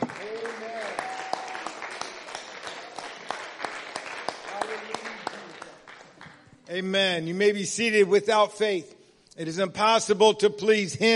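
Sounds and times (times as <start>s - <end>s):
audience applause: 0.0s - 6.4s
speech: 6.7s - 11.1s.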